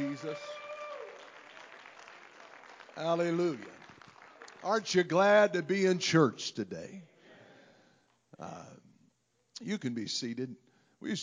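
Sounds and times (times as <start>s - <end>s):
audience hand clapping: 0.0s - 5.3s
speech: 0.2s - 0.6s, 3.0s - 3.8s, 4.6s - 7.1s, 8.4s - 8.8s, 9.6s - 11.2s.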